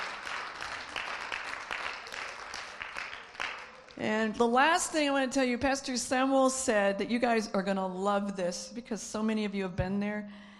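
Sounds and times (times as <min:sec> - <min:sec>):
audience cheering: 0:00.0 - 0:04.0
speech: 0:04.0 - 0:10.5.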